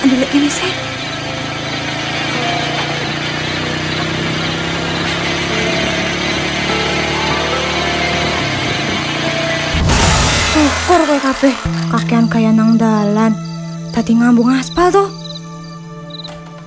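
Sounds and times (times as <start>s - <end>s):
many motorcycle engines droning: 0.0s - 16.6s
speech: 11.4s - 15.1s.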